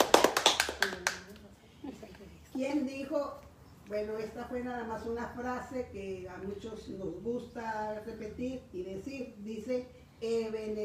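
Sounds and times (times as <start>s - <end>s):
hand claps: 0.0s - 1.4s
speech: 2.6s - 10.8s.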